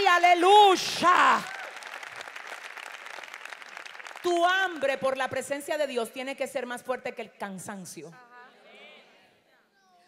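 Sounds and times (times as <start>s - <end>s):
speech: 0.3s - 1.6s, 4.2s - 8.3s
audience applause: 1.2s - 4.4s.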